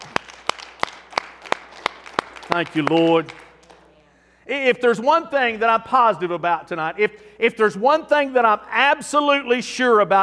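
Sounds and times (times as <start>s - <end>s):
audience hand clap: 0.0s - 3.9s
speech: 2.5s - 3.4s, 4.5s - 10.2s.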